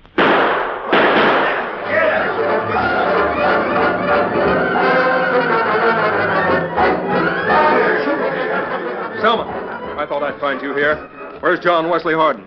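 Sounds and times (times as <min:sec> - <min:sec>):
gunshots in a radio-drama gunfight: 0:00.0 - 0:02.9
laughter: 0:01.8 - 0:11.0
voices and commotion: 0:01.8 - 0:12.4
speech: 0:10.6 - 0:12.4.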